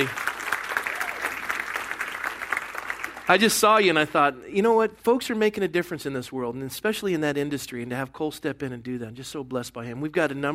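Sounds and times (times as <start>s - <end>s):
speech: 0.0s - 0.2s, 3.3s - 10.5s
crowd clapping: 0.0s - 4.0s.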